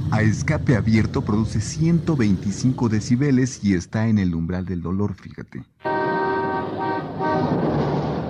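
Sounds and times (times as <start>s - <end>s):
speech: 0.2s - 5.8s
car horn honking: 5.8s - 8.0s.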